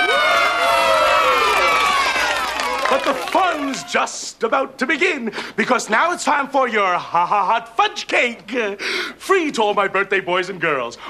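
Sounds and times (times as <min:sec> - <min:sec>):
young voices cheering for birthday children: 0:00.0 - 0:04.1
speech: 0:02.9 - 0:11.0.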